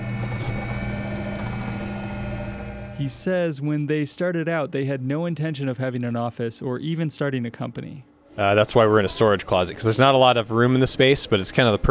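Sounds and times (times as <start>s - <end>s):
custom-built 3D printer for prototypes whirring with gears and motors: 0.0s - 3.2s
speech: 3.0s - 11.9s.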